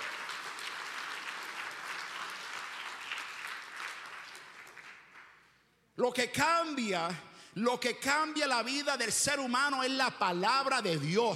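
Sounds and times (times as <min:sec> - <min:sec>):
audience applause: 0:00.0 - 0:05.4
speech: 0:06.0 - 0:11.3.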